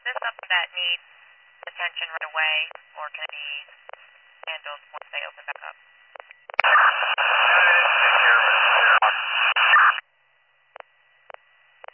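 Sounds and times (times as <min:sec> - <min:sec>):
radio static hissing: 0:00.0 - 0:01.0, 0:01.6 - 0:10.0
speech: 0:00.2 - 0:06.0.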